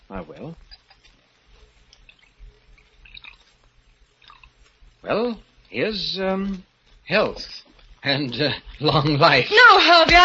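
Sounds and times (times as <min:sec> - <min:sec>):
speech: 0:00.1 - 0:00.8, 0:05.0 - 0:10.2
wine being poured into a goblet: 0:02.0 - 0:04.5.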